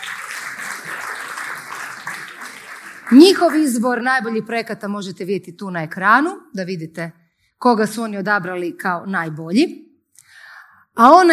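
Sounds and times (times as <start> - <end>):
audience clapping for journalists at a marketing awards event: 0.0 - 4.4
speech: 3.1 - 9.9, 11.0 - 11.3.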